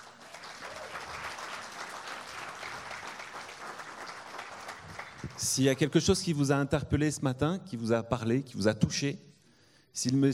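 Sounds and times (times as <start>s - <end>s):
audience applause: 0.0s - 5.4s
speech: 5.4s - 9.3s, 10.0s - 10.3s.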